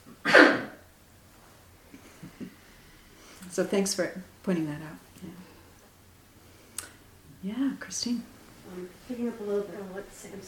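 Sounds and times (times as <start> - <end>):
loud sharp sneeze: 0.2 - 0.8
faint short breaths or sniffs: 1.9 - 3.6, 5.2 - 7.2
speech: 3.5 - 5.3, 7.4 - 10.4.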